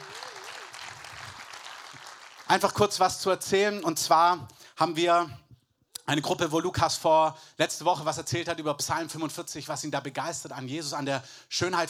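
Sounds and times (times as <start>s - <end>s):
audience applause: 0.0s - 2.6s
speech: 2.5s - 5.4s, 6.1s - 11.8s.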